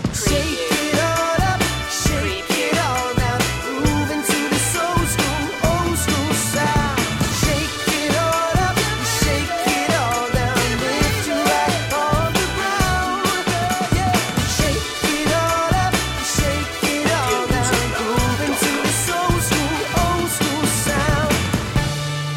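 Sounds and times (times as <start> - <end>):
vocals: 0.1 - 22.2.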